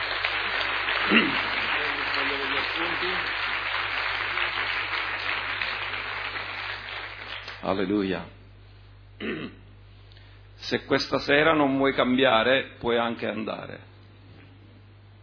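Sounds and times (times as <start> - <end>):
audience applause: 0.0 - 7.6
speech: 1.1 - 1.5, 2.7 - 3.4, 7.6 - 8.4, 9.2 - 9.6, 10.6 - 13.9.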